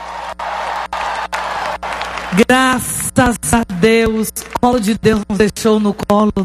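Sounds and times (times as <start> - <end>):
crowd applauding: 0.0 - 3.2
speech: 2.3 - 6.4.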